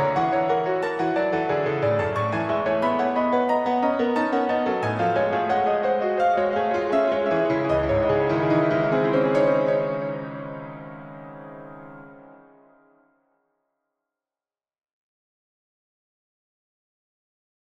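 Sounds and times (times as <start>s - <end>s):
piano arpeggio etude: 0.0s - 12.8s.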